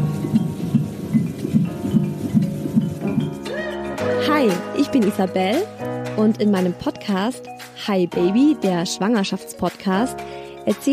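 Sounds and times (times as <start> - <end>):
rapid fetal heartbeat on an ultrasound monitor: 0.0 - 3.4
speech: 4.4 - 10.9.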